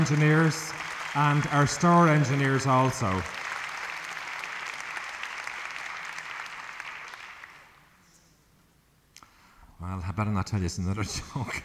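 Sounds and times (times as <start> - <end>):
speech: 0.0 - 3.4, 10.0 - 11.6
audience applause: 0.0 - 7.8.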